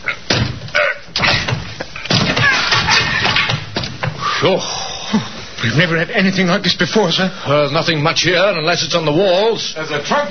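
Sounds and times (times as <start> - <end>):
door crashing open: 0.3 - 4.2
speech: 4.4 - 10.2.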